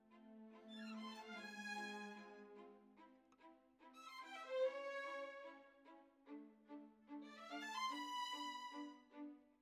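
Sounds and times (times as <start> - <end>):
violins: 0.0 - 9.6.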